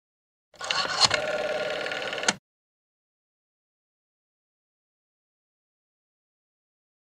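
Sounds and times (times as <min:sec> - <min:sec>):
telephone: 0:00.6 - 0:02.4.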